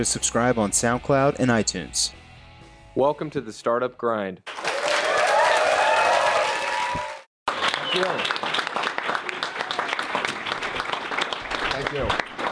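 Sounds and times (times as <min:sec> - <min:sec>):
speech: 0:00.0 - 0:02.2, 0:03.0 - 0:04.5, 0:07.9 - 0:08.5, 0:11.8 - 0:12.2
audience applause: 0:04.5 - 0:12.4.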